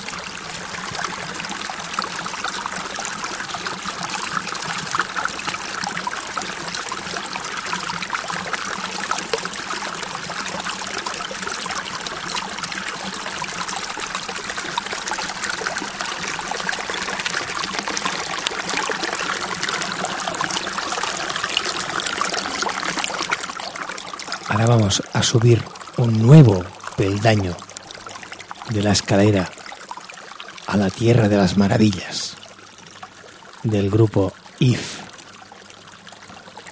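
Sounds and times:
river water flowing: 0.0s - 36.7s
speech: 24.9s - 27.6s, 28.7s - 29.6s, 30.7s - 32.2s, 33.6s - 34.9s.

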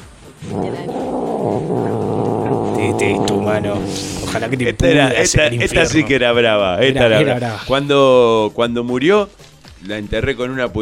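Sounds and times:
cat growling: 0.4s - 5.4s
speech: 3.6s - 10.8s.

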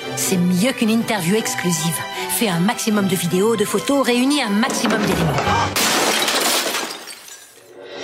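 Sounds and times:
speech: 0.2s - 6.0s
vase shattering: 4.8s - 7.8s.

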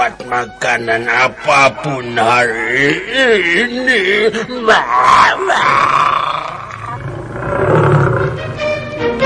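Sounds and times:
speech: 0.0s - 6.5s
lion roaring: 4.9s - 9.1s.

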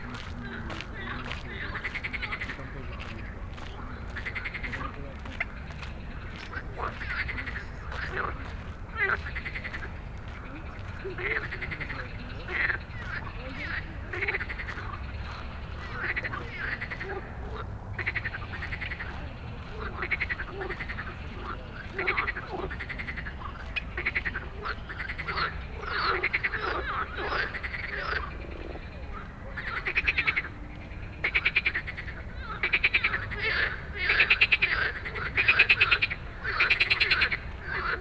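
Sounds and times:
frogs croaking: 0.0s - 38.0s.

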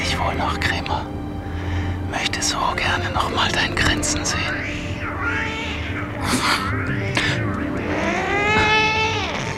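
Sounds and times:
speech: 0.2s - 1.3s, 2.1s - 5.5s, 6.3s - 7.1s
two tomcats yowling and fighting: 3.3s - 9.5s
tomcats spitting: 3.7s - 9.5s.

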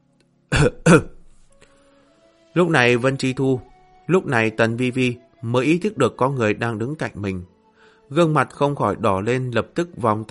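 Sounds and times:
forced fake dry coughs: 0.5s - 1.2s
speech: 0.6s - 1.2s, 2.6s - 7.5s, 8.1s - 10.2s.

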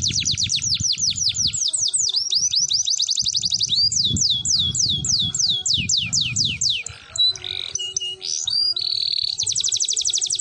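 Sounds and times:
canary song: 0.0s - 10.4s.

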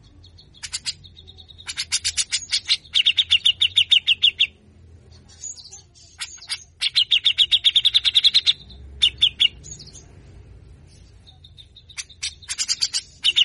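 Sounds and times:
grey-cheeked bulbul rasping buzzy calls: 0.5s - 4.6s, 6.1s - 9.8s, 11.3s - 13.4s.

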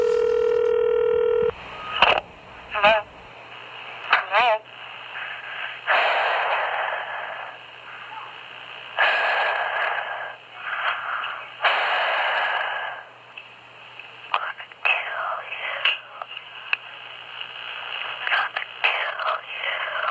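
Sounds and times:
telephone being dialed: 0.0s - 1.5s
loud hiss of telephone line static: 0.0s - 20.0s.

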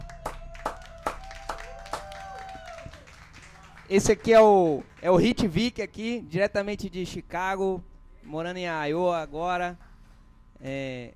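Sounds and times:
hand claps: 0.0s - 5.6s
speech: 3.9s - 9.9s, 10.6s - 11.1s.

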